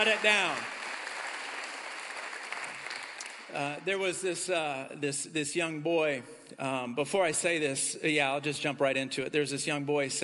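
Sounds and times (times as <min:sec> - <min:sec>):
speech: 0:00.0 - 0:00.8, 0:03.5 - 0:10.2
audience applause: 0:00.0 - 0:03.8.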